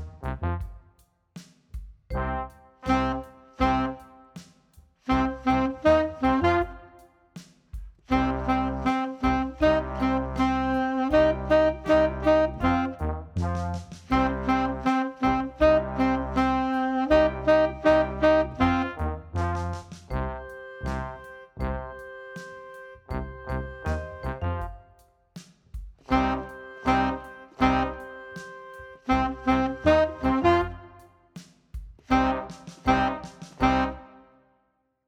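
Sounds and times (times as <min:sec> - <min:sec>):
loud power rock tenor saxophone: 0:02.2 - 0:04.4, 0:05.1 - 0:07.1, 0:08.1 - 0:13.4, 0:14.0 - 0:24.9, 0:26.0 - 0:31.1, 0:32.1 - 0:34.2.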